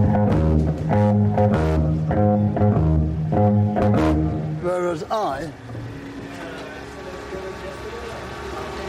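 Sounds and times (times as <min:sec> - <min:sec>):
bass guitar playing in a conventional style: 0:00.0 - 0:06.2.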